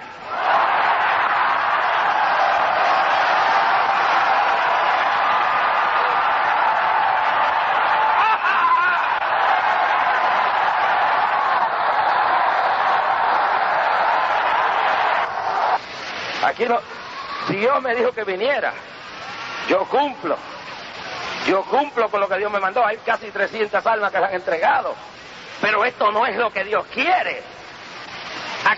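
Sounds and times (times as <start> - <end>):
audience shouting glory to God: 0.0 - 15.8, 16.9 - 17.6
speech: 16.5 - 16.9, 17.5 - 19.0, 19.7 - 20.5, 21.4 - 27.5.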